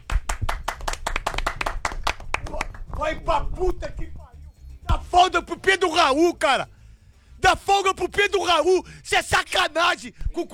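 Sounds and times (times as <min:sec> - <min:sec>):
brisk round of hand clapping: 0:00.0 - 0:03.8
speech: 0:03.0 - 0:04.2, 0:05.1 - 0:06.8, 0:07.4 - 0:10.5.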